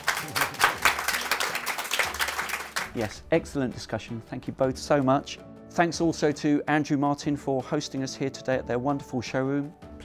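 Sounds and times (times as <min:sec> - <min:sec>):
audience applause after a live talk in a showroom: 0:00.0 - 0:03.1
speech: 0:03.0 - 0:10.0.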